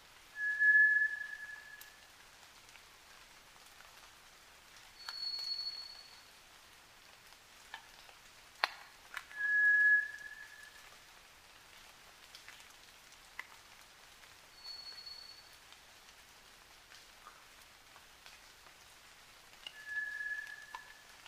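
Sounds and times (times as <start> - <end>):
White's thrush singing flat drawn-out whistles at night: 0.4 - 2.0, 5.0 - 6.1, 9.4 - 10.8, 14.6 - 15.5, 19.7 - 21.0.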